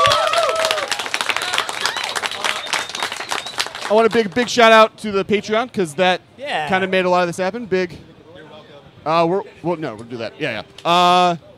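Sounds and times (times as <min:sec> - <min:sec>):
faint voices and cheers: 0:00.0 - 0:04.1
crowd applauding: 0:00.0 - 0:04.7
speech: 0:03.9 - 0:08.1, 0:09.0 - 0:11.5.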